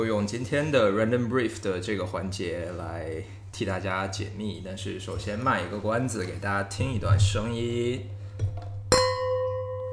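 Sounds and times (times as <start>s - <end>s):
speech: 0.0s - 8.5s
two wine glasses clinking: 8.9s - 9.9s.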